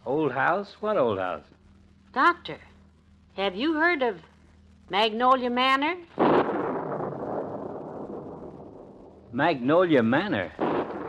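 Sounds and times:
speech: 0.4s - 2.7s, 3.4s - 4.3s, 4.9s - 6.4s, 9.4s - 10.6s
thunderclap: 6.1s - 11.0s.

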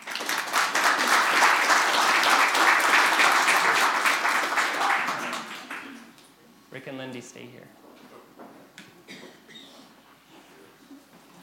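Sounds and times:
audience applause: 0.0s - 6.2s
speech: 7.2s - 7.9s.

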